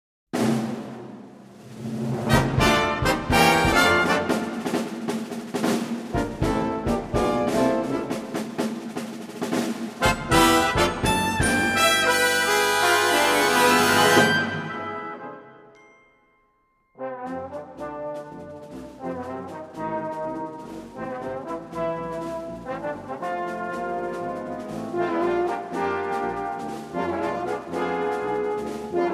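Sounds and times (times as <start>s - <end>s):
brass instruments: 0.4s - 15.8s, 17.0s - 29.1s.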